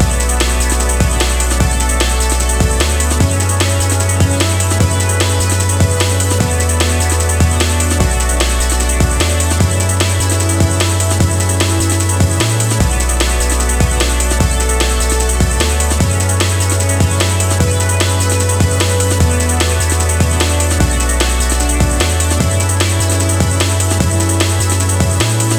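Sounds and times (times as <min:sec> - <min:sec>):
fast drum and bass music: 0:00.0 - 0:25.5.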